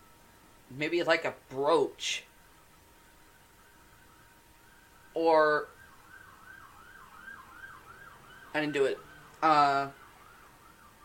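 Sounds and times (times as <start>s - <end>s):
speech: 0.7s - 2.3s, 5.2s - 5.7s, 8.5s - 10.0s
wailing siren outside at night: 2.4s - 11.0s.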